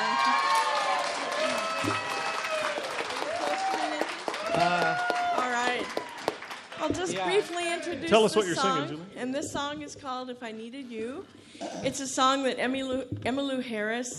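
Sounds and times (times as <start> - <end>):
convention audience clapping for a singing duo: 0.0 - 8.7
speech: 1.8 - 2.1, 4.6 - 5.1, 6.9 - 14.1.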